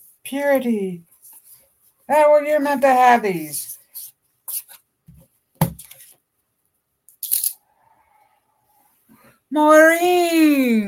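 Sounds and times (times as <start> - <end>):
speech: 0.3 - 1.1, 2.1 - 3.6, 9.5 - 10.8
deck of cards shuffling: 3.9 - 6.2, 7.2 - 7.6.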